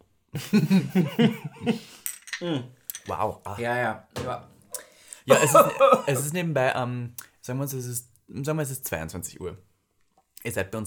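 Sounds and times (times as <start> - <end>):
laughter: 0.4 - 1.9, 5.3 - 6.3
speech: 0.4 - 4.6, 5.3 - 9.7, 10.4 - 10.8
glasses clinking in a toast: 2.0 - 3.1.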